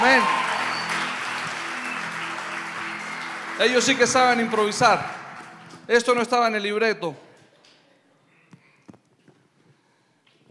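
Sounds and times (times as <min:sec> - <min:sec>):
audience applause: 0:00.0 - 0:06.1
speech: 0:03.6 - 0:05.2, 0:05.9 - 0:07.2.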